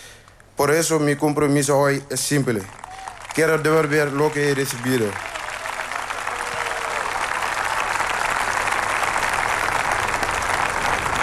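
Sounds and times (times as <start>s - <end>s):
speech: 0.6s - 2.8s, 3.4s - 5.4s
audience applause after a speech: 2.6s - 11.2s.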